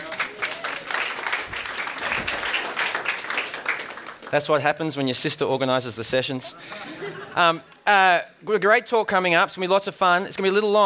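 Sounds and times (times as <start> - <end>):
small round of applause: 0.0 - 4.4
speech: 4.3 - 10.8
laughter: 6.3 - 7.8.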